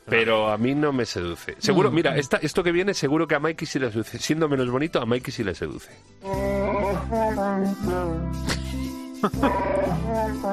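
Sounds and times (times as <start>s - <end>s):
speech: 0.1s - 8.5s, 9.2s - 10.5s
Chihuahua dog howling along to a song: 6.2s - 8.3s, 9.4s - 10.5s.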